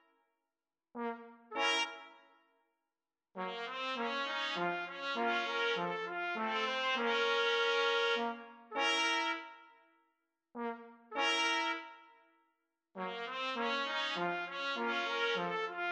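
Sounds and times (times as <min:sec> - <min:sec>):
trombone: 0:03.4 - 0:09.4, 0:10.6 - 0:11.8, 0:13.0 - 0:15.8
two trumpets: 0:03.4 - 0:09.6, 0:10.6 - 0:12.0, 0:13.0 - 0:15.8.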